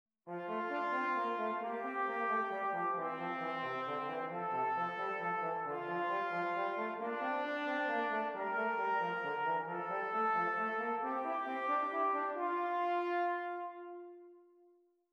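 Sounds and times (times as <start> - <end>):
two-voice counterpoint exercises: 0.4 - 14.3.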